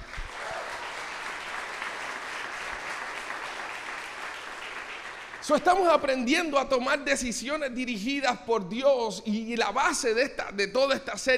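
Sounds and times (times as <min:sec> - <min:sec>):
audience applause: 0:00.0 - 0:06.1
speech: 0:05.4 - 0:11.3.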